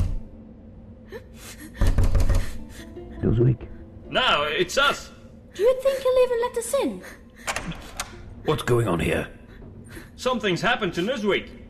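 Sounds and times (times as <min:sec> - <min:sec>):
knocking on a door: 0:01.8 - 0:02.6
speech: 0:03.3 - 0:07.8, 0:08.4 - 0:09.4, 0:10.2 - 0:11.6.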